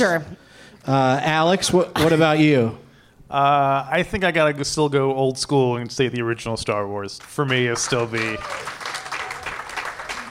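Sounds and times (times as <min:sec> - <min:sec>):
speech: 0:00.0 - 0:08.8
weak spotty audience applause: 0:07.2 - 0:10.3.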